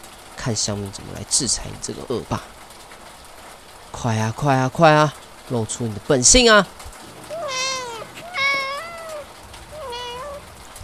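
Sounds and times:
speech: 0.4s - 2.6s, 3.9s - 6.8s
kitten meowing: 7.2s - 10.6s.

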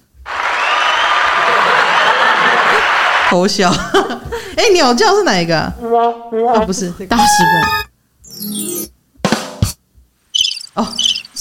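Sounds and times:
applause: 0.2s - 3.4s
laughter: 1.4s - 4.4s
speech: 3.3s - 7.8s.

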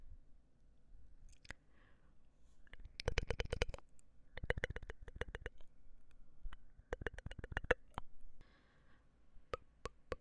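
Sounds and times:
wet mouth clicks and smacks: 1.3s - 1.6s, 2.7s - 5.7s, 6.5s - 8.1s, 9.5s - 10.2s.

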